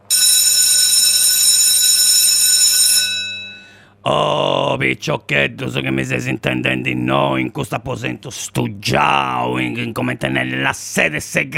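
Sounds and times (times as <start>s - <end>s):
bell ringing: 0.1s - 3.8s
speech: 4.8s - 11.5s.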